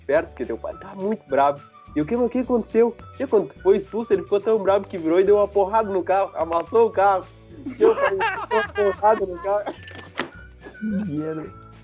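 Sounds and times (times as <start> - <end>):
speech: 0.1 - 9.9, 10.8 - 11.6
laughter: 7.6 - 10.3
hand hitting the camera: 9.8 - 10.4.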